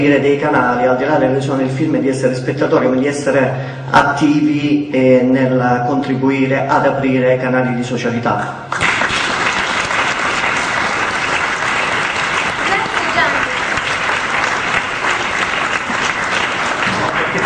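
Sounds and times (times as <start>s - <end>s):
speech: 0.0s - 8.9s
audience applause: 8.7s - 17.4s.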